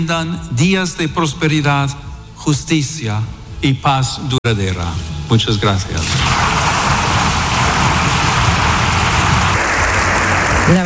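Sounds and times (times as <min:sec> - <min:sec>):
speech: 0:00.0 - 0:06.5
large crowd applause: 0:06.0 - 0:10.8.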